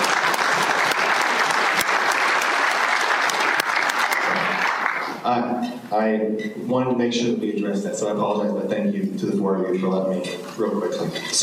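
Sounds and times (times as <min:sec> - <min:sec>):
audience applause: 0:00.0 - 0:05.2
speech: 0:05.3 - 0:11.4.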